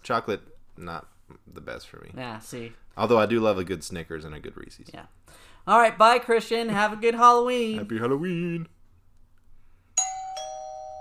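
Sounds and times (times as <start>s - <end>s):
speech: 0.0s - 8.8s
two-tone doorbell chime: 10.0s - 10.9s.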